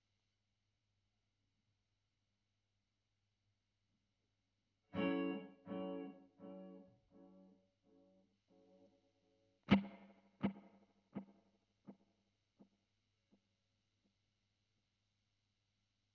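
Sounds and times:
guitar recorded with Royer microphone: 4.9 - 12.0.

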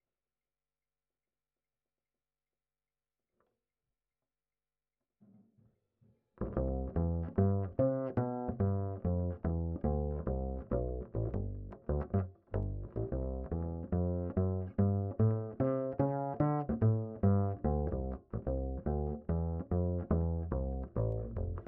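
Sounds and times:
bass line: 6.4 - 21.6.

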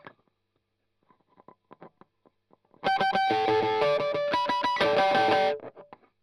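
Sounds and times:
strumming: 2.9 - 5.6.

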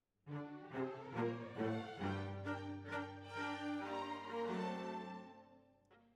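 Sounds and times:
cellos playing: 0.3 - 5.5.

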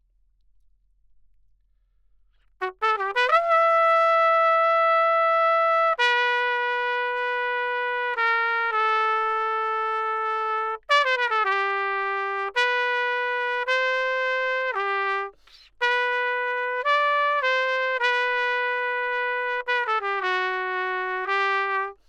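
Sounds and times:
trumpet: 2.4 - 22.0.

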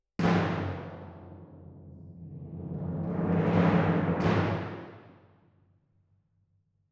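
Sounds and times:
timpani: 0.2 - 5.5.

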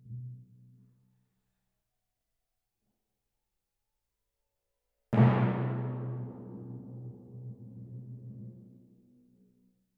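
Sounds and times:
timpani: 5.2 - 8.9.

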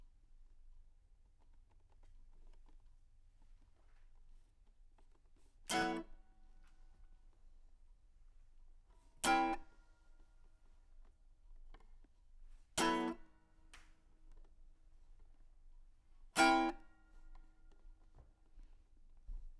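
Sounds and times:
guitar: 5.7 - 6.2, 9.2 - 9.7, 12.8 - 13.4, 16.4 - 17.2.

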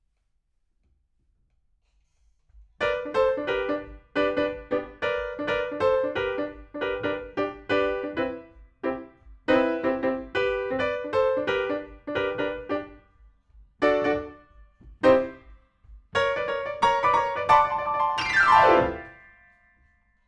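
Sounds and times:
rock and roll piano: 2.8 - 13.0, 13.8 - 19.3.

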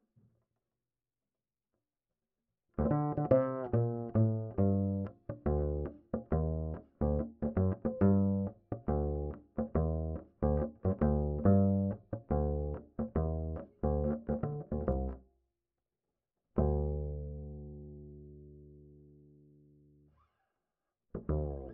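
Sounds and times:
bass line: 2.8 - 15.2, 16.6 - 19.2, 21.2 - 21.7.

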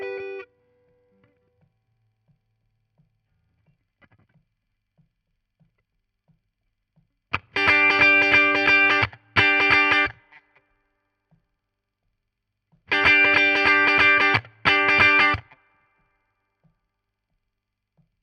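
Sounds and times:
guitar solo: 0.0 - 0.5, 7.4 - 10.4, 12.9 - 15.6.

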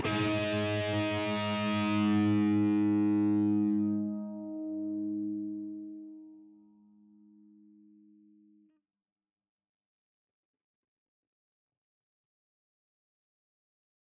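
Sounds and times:
guitar: 0.0 - 8.8.

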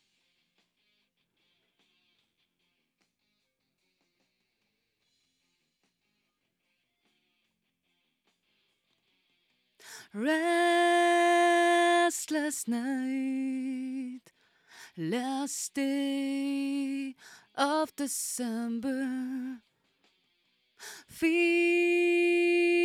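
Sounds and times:
vocals: 9.8 - 19.7, 20.8 - 22.8.

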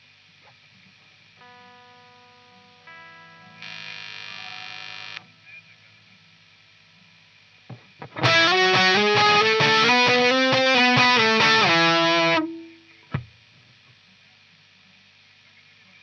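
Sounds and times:
guitar: 0.0 - 14.0.

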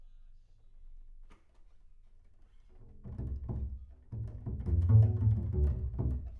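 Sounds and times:
bass sound: 4.2 - 6.3.

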